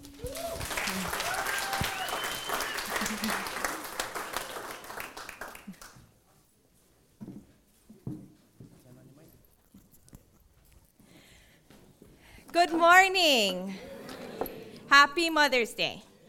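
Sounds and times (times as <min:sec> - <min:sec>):
crowd applauding: 0:00.0 - 0:06.0
laughter: 0:02.6 - 0:04.6, 0:13.7 - 0:14.9
faint thumps and shuffling: 0:06.3 - 0:11.0
speech: 0:12.7 - 0:13.8, 0:14.9 - 0:16.1.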